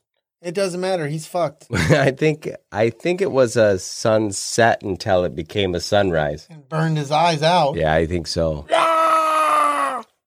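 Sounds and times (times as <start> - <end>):
speech: 0.4 - 9.0
person imitating a pterodactyl scream: 8.7 - 10.2.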